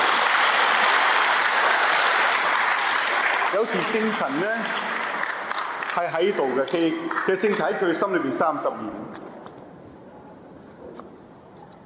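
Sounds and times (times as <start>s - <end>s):
clapping: 0.0s - 7.7s
speech: 3.7s - 5.0s, 6.0s - 9.4s.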